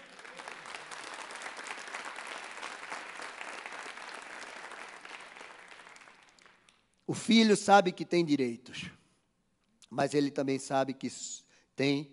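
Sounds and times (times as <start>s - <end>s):
audience applause: 0.0s - 6.7s
speech: 7.1s - 9.0s, 10.0s - 12.1s.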